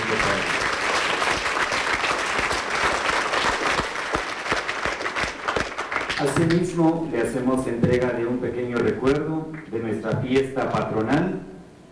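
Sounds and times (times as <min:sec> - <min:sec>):
audience applause: 0:00.0 - 0:06.6
speech: 0:06.2 - 0:11.5.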